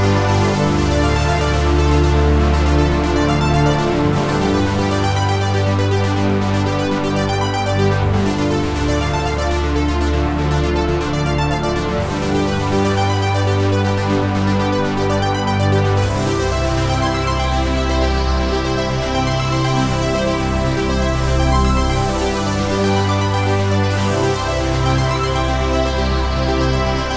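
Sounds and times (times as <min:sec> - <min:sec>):
80s space game music: 0:00.0 - 0:27.1.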